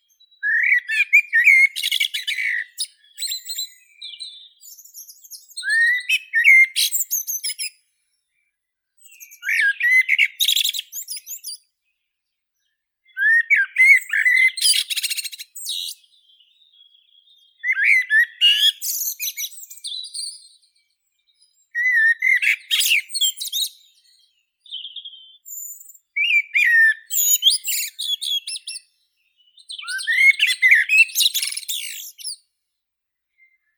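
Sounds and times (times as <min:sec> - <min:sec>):
blackbird Turdus merula: 0:00.0 - 0:32.5, 0:33.2 - 0:33.7.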